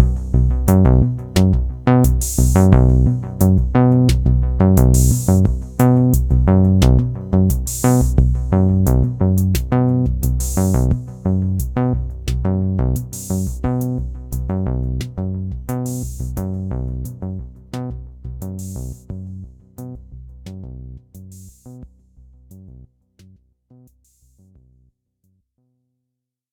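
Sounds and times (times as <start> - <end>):
TR808 drum machine simple sequence: 0.0 - 21.8.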